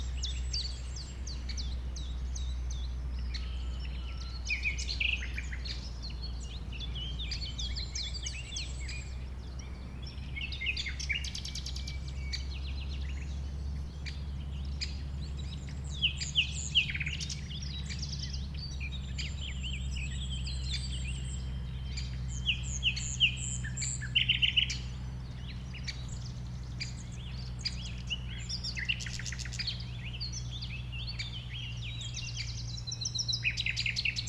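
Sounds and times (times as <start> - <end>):
common nightingale song: 0.0 - 34.2
low continuous drone of traffic: 0.0 - 34.2
other birds chirping: 0.0 - 34.2.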